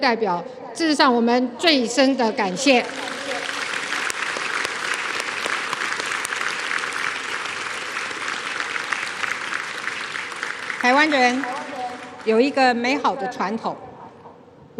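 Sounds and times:
speech: 0.0 - 3.3, 10.8 - 11.6, 12.2 - 13.8
audience applause: 2.6 - 12.6.

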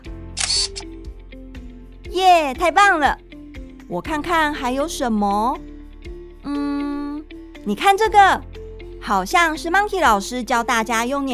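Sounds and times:
camera shutter snap: 0.4 - 1.0
speech: 2.2 - 3.2, 3.9 - 5.7, 7.6 - 11.3.

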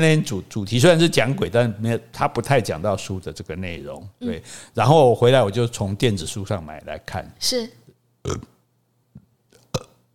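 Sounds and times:
speech: 0.0 - 8.5
burp: 8.2 - 8.6, 9.6 - 10.1.

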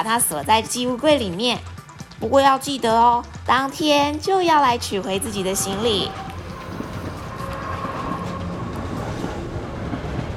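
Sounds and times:
speech: 0.0 - 6.2
train rumbling on rails: 3.8 - 10.3
train wheels clattering: 4.7 - 10.3
thin high whine: 4.8 - 9.3.

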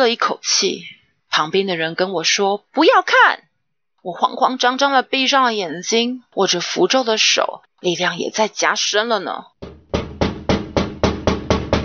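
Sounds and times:
speech: 0.0 - 9.8
knocking on a window: 9.6 - 11.8.

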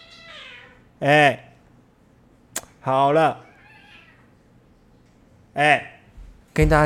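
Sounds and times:
cat yowling: 0.0 - 0.9, 3.4 - 4.4
speech: 1.0 - 1.5, 2.8 - 3.5, 5.6 - 6.0, 6.6 - 6.8.

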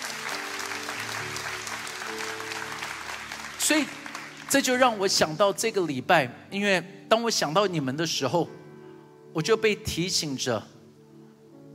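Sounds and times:
audience applause: 0.0 - 5.0
speech: 3.7 - 8.6, 9.3 - 10.8.

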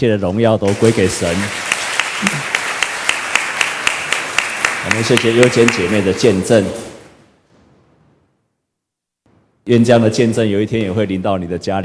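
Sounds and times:
speech: 0.0 - 2.6, 4.8 - 6.9, 9.6 - 11.8
audience applause: 0.7 - 6.8.

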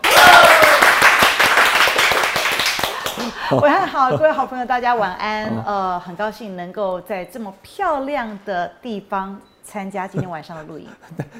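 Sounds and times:
audience applause: 0.0 - 3.4
speech: 3.5 - 11.3.

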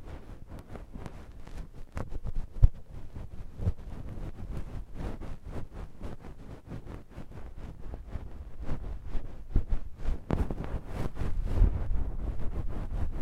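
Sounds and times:
left ear massage muffled rubbing: 0.0 - 13.2
quick irregular crackles and taps: 0.1 - 5.4, 10.0 - 11.4.

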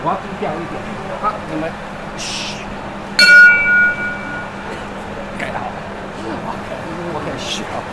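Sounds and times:
speech: 0.0 - 2.6, 6.5 - 7.9
train departure bell being rung: 3.2 - 4.7.

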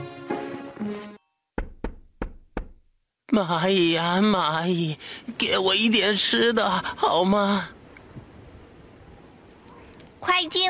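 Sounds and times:
knocking on a door: 1.6 - 2.9
speech: 3.3 - 7.8, 10.3 - 10.6.

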